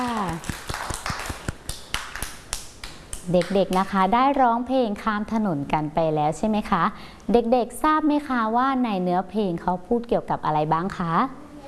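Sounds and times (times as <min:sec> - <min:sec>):
children clapping: 0:00.0 - 0:03.9
speech: 0:03.3 - 0:11.4.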